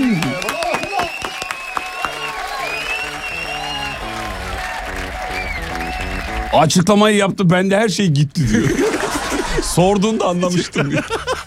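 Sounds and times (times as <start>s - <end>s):
audience applause for a quiz contestant: 0.0s - 6.8s
speech: 6.6s - 8.9s, 9.7s - 11.3s
laughter: 8.4s - 11.4s
tonal sounds: 8.5s - 10.5s.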